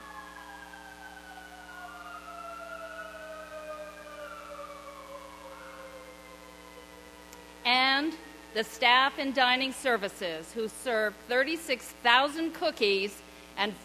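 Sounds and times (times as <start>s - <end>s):
ambulance sirens passing by: 0.0s - 9.4s
speech: 7.7s - 13.8s.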